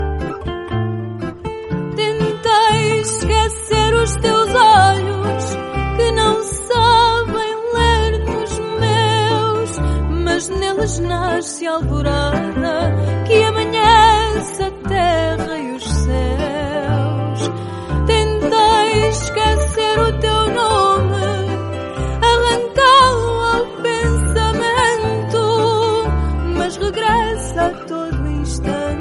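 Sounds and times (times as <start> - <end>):
fado music: 0.0 - 29.0.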